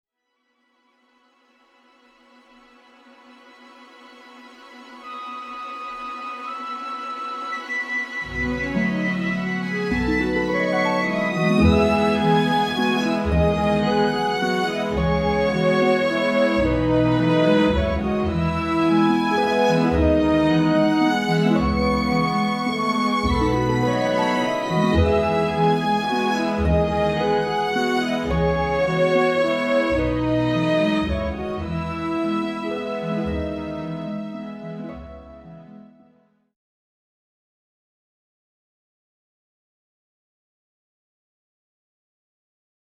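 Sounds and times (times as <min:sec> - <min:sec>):
sappy waltz: 0:07.6 - 0:36.2.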